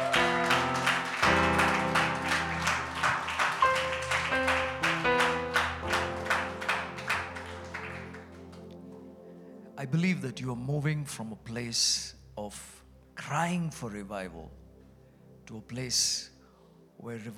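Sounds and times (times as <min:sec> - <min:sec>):
audience clapping in rhythm: 0:00.0 - 0:08.8
sustained keyboard chords: 0:00.0 - 0:10.4
speech: 0:09.9 - 0:14.6, 0:15.5 - 0:16.3, 0:17.0 - 0:17.3.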